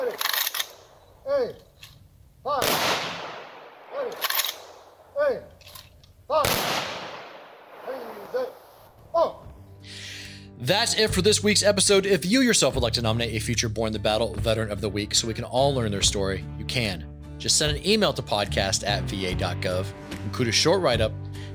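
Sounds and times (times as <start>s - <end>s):
rifle volleys fired as a funeral salute for veterans: 0.0s - 1.1s, 2.6s - 8.8s
speech: 1.4s - 2.8s, 10.7s - 21.2s.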